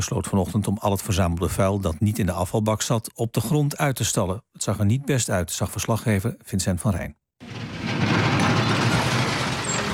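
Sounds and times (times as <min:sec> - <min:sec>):
speech: 0:00.0 - 0:07.2
garbage truck engine rumble in Amsterdam's Vondelpark: 0:07.4 - 0:09.9.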